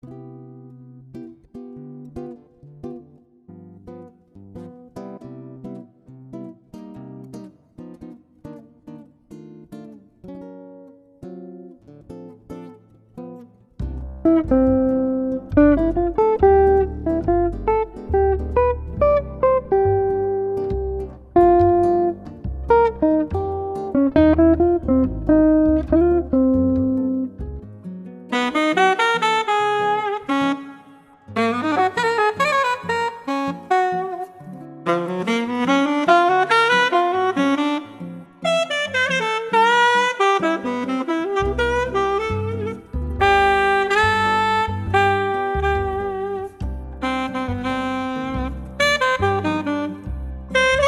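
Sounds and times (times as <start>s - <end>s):
classic jazz music: 14.0s - 27.7s, 28.3s - 50.8s.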